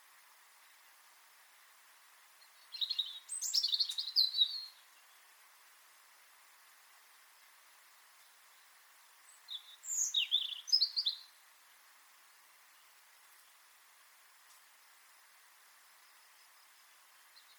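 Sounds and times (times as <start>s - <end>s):
European robin singing: 2.4s - 5.3s, 7.9s - 11.4s, 16.2s - 17.5s.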